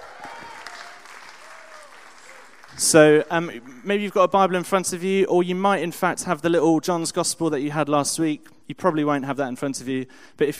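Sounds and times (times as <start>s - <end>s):
audience applause: 0.0s - 3.6s
speech: 2.8s - 10.5s.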